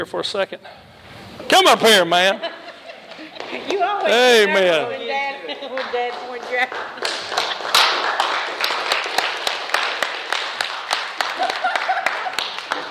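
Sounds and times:
speech: 0.0s - 2.5s, 3.5s - 7.5s
laughter: 2.1s - 4.0s, 11.2s - 12.8s
church congregation clapping: 3.1s - 4.7s, 5.7s - 12.8s.

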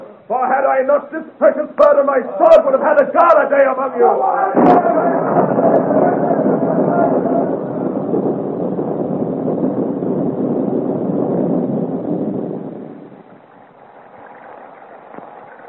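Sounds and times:
speech: 0.3s - 6.1s
storm wind: 4.0s - 15.6s
heavy rain downpour: 4.6s - 15.6s.

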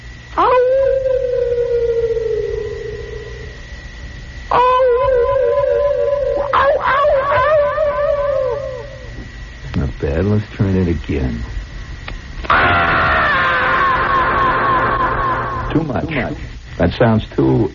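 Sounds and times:
echoing howls of wild animals: 0.3s - 3.7s, 4.5s - 9.2s, 12.4s - 15.8s
speech: 10.3s - 11.6s, 15.8s - 17.7s.

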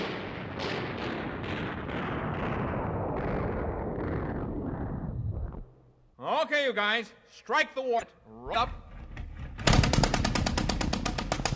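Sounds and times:
rapid gunfire sound effect: 0.0s - 3.7s, 9.6s - 11.5s
artillery booming sound effect: 0.0s - 5.6s
speech: 6.4s - 8.8s.

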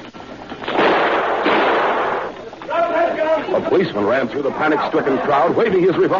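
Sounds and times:
gunshot fired at a man: 0.6s - 2.3s
speech: 3.6s - 6.1s.

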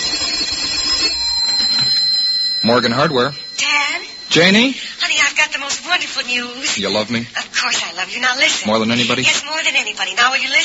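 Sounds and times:
telephone ringing: 0.0s - 6.9s
speech: 2.6s - 3.4s, 4.3s - 10.6s.

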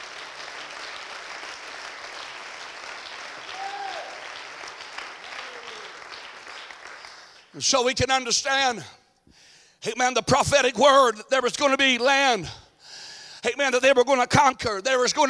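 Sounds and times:
audience clapping: 0.0s - 7.8s
speech: 7.6s - 9.0s, 9.8s - 12.6s, 13.4s - 15.2s.

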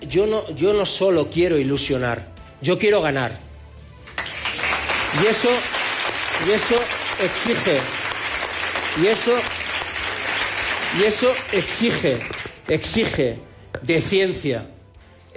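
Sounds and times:
speech: 0.0s - 3.5s, 5.1s - 5.8s, 6.4s - 8.0s, 9.0s - 9.6s, 10.9s - 14.7s
applause at a political rally: 4.0s - 13.2s.

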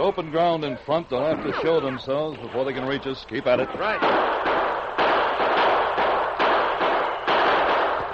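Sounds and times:
speech: 0.0s - 4.4s
gunshots in a gunfight: 3.8s - 8.1s
bullets striking a wooden barrier: 4.0s - 8.1s.

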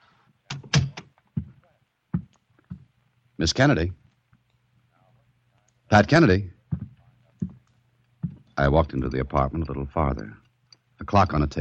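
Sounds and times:
speech: 3.4s - 4.0s, 5.9s - 6.6s, 8.6s - 10.4s, 11.0s - 11.5s
knocking on a door: 6.7s - 7.6s, 8.2s - 8.4s.

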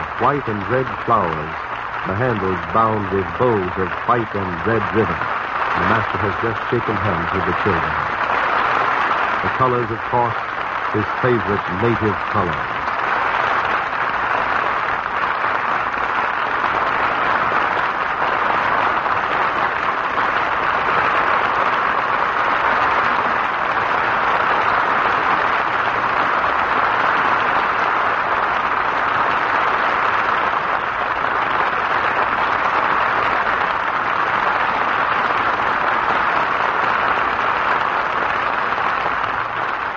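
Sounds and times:
large audience standing and applauding: 0.0s - 39.9s
speech: 0.2s - 8.2s, 9.4s - 12.8s.

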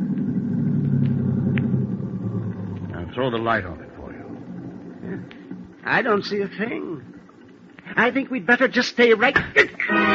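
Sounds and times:
car engine rumbling as it pulls up: 0.0s - 7.8s
speech: 3.2s - 3.9s, 5.1s - 7.1s, 8.0s - 10.1s.

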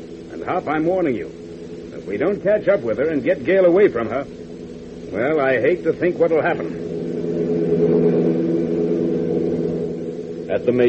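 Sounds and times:
car engine roaring accelerating down highway: 0.0s - 10.8s
speech: 0.4s - 1.4s, 2.0s - 4.4s, 5.1s - 7.9s, 10.5s - 10.8s.

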